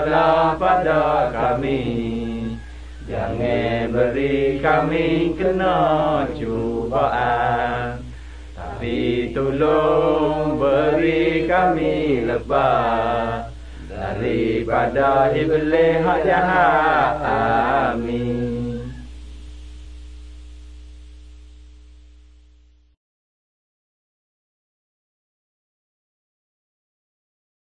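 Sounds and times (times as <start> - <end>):
Malay songs from Pattani: 0.0 - 19.2.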